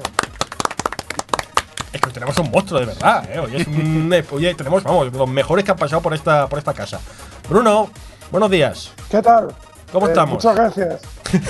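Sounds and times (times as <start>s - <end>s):
audience applause: 0.0s - 3.6s
laughter: 2.0s - 4.3s, 11.2s - 11.4s
speech: 2.0s - 11.4s.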